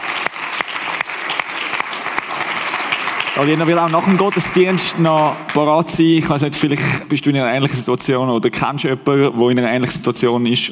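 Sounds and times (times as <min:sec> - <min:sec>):
audience applause: 0:00.0 - 0:06.2
speech: 0:03.4 - 0:10.7.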